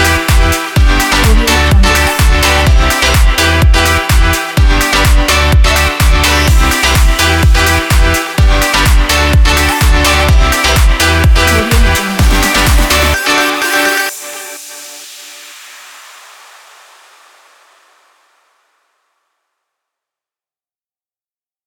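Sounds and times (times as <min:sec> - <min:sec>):
EDM dance music: 0:00.0 - 0:16.8.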